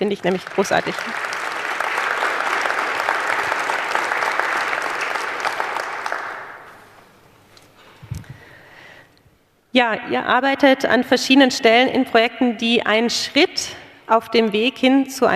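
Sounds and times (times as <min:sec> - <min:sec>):
speech: 0:00.0 - 0:01.4, 0:09.8 - 0:15.3
audience applause: 0:00.0 - 0:07.0.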